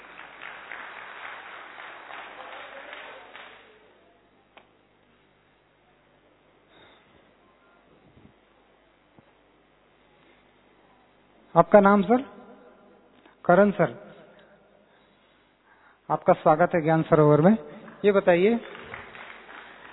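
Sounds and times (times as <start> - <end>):
audience applause at Gyan Sarovar welcoming a volunteer: 0.0 - 4.0, 17.8 - 19.9
speech: 11.6 - 12.3, 13.5 - 14.0, 16.1 - 18.7.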